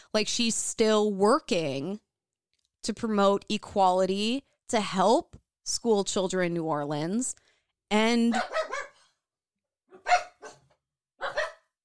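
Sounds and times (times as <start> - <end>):
speech: 0.1 - 2.1, 2.8 - 8.7
dogs barking angrily: 8.3 - 9.1, 9.9 - 11.7.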